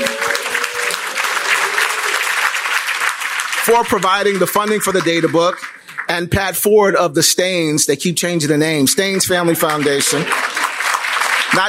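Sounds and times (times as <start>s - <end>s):
applause at a community presentation of a data book on North Lawndale: 0.0s - 6.5s, 9.0s - 11.6s
speech: 3.7s - 10.6s.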